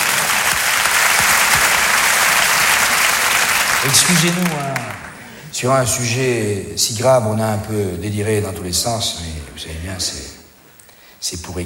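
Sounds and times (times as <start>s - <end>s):
audience applause: 0.0s - 5.4s
speech: 3.8s - 4.9s, 5.5s - 10.4s, 11.2s - 11.6s.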